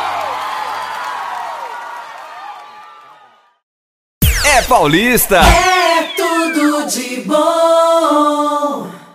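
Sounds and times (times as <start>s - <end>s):
audience applause and cheering: 0.0s - 3.6s, 5.6s - 6.8s
speech: 4.6s - 5.8s, 6.6s - 9.0s.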